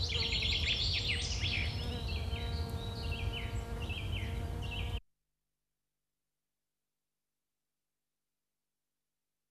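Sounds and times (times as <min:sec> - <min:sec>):
birds chirping on a field with a farm nearby: 0:00.0 - 0:05.0.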